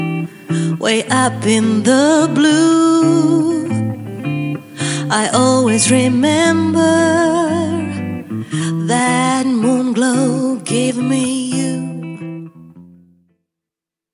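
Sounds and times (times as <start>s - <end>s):
person singing: 0.0s - 12.4s.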